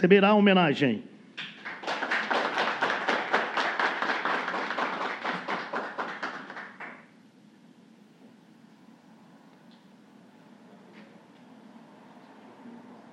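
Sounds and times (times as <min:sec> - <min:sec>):
speech: 0:00.0 - 0:01.5
audience applause: 0:01.6 - 0:07.1.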